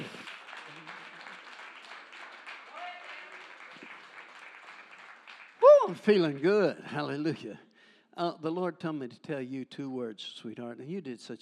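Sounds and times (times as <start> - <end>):
audience clapping hands: 0.0 - 6.7
speech: 5.9 - 11.4.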